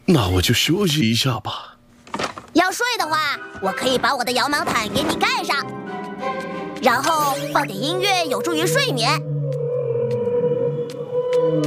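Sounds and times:
speech: 0.1s - 1.7s, 2.6s - 9.3s
whale song: 9.2s - 11.6s.

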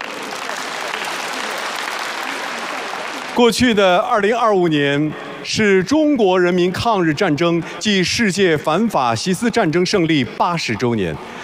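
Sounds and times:
audience applause: 0.0s - 3.6s
speech: 3.4s - 11.4s.

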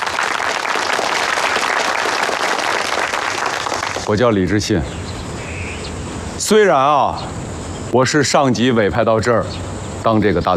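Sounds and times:
audience applause welcoming a newly appointed guerrilla brigade leader: 0.0s - 4.2s
speech: 4.1s - 5.1s, 6.5s - 10.5s.

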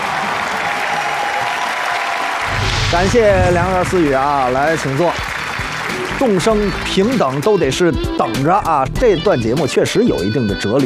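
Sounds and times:
audience applause at a stage comedy performance: 0.0s - 7.5s
speech: 2.9s - 5.3s, 6.2s - 10.8s.

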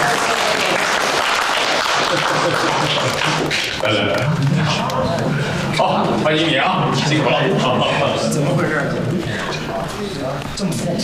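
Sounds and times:
applause: 0.0s - 3.8s
laughter: 1.7s - 5.7s
speech: 2.5s - 11.0s.

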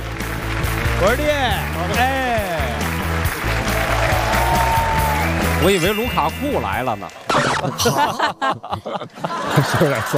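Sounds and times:
applause welcoming a guest onto a game show stage: 0.0s - 5.9s, 9.1s - 10.1s
low thumping music bed: 0.0s - 8.3s
speech: 1.0s - 2.8s, 5.6s - 10.1s
laughter: 7.3s - 10.1s.

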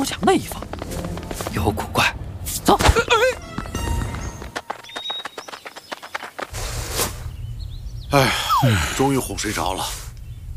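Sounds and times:
speech: 0.0s - 0.7s, 1.6s - 2.1s, 8.1s - 10.0s
donkey hooves clip-clopping: 0.0s - 2.2s, 2.9s - 6.6s.

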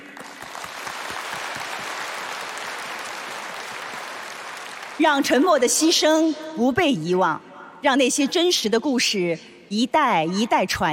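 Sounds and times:
sustained applause from a large crowd: 0.0s - 5.0s
speech: 5.0s - 10.9s.

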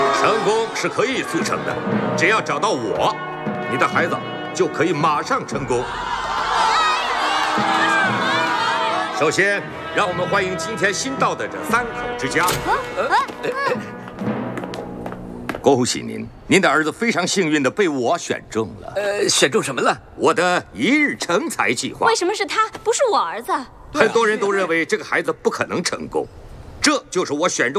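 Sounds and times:
speech: 0.2s - 6.2s, 7.5s - 7.9s, 9.2s - 14.4s, 15.7s - 27.7s
crowd cheering with excited shouts and whoops: 5.8s - 9.2s
crowd applause: 6.3s - 9.1s.

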